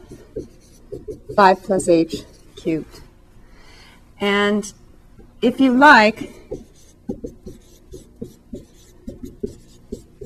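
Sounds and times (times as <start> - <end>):
pen scratching on scratch paper while working a math problem: 0.0 - 2.7, 6.5 - 10.2
speech: 1.4 - 3.0, 4.2 - 4.8, 5.4 - 7.4.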